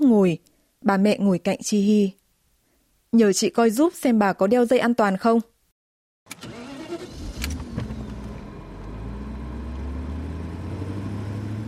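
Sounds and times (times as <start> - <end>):
speech: 0.1 - 2.2, 3.1 - 5.5
SUV engine starting and driving off: 6.3 - 11.6.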